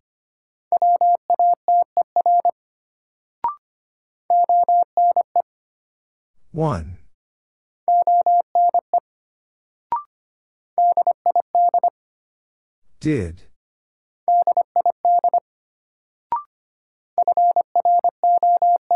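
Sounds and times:
Morse code beeps at 25 words per minute: 0.8 - 2.5, 4.3 - 5.4, 7.9 - 8.8, 10.8 - 11.9, 14.3 - 15.4, 17.2 - 18.9
speech: 6.5 - 7.0, 13.0 - 13.5.

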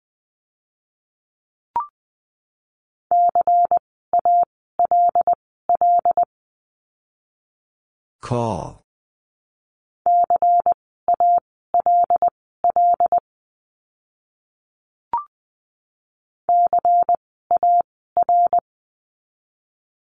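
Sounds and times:
mid-pitched Morse code beeps at 20 words per minute: 3.1 - 6.3, 10.1 - 13.2, 16.5 - 18.6
speech: 8.2 - 8.8.

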